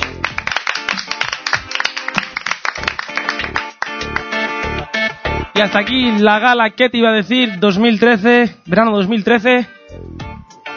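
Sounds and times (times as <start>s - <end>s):
applause: 0.0s - 4.5s
speech: 5.6s - 10.0s.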